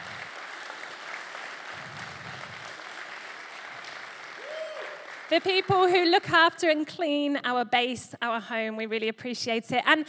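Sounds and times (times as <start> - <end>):
audience applause: 0.0 - 6.0
speech: 5.3 - 10.0.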